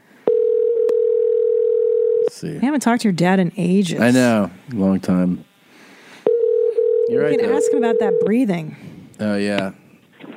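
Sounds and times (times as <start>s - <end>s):
phone line tone on an outgoing call: 0.2s - 2.3s, 6.3s - 8.5s
phone line click: 0.3s - 2.3s
speech: 2.4s - 5.5s, 7.1s - 9.8s.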